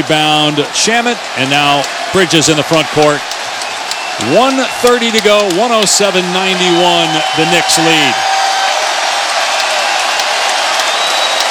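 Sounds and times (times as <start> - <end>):
speech: 0.0 - 3.4, 4.2 - 8.6
big arena crowd applauding and roaring: 0.0 - 11.4.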